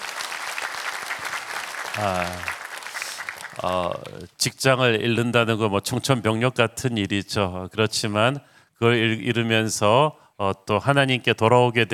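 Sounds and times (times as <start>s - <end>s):
crowd applauding: 0.0s - 4.3s
speech: 2.0s - 2.6s, 3.6s - 11.9s.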